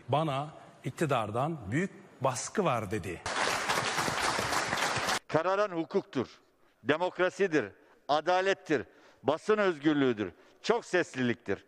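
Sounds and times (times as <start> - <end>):
speech: 0.1 - 3.4, 5.3 - 11.6
crowd applause at a protest: 3.3 - 5.2.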